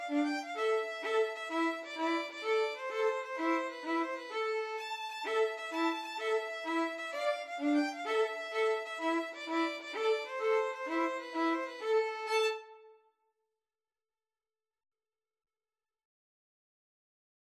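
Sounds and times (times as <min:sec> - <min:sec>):
tarantella violin duet: 0:00.0 - 0:12.9.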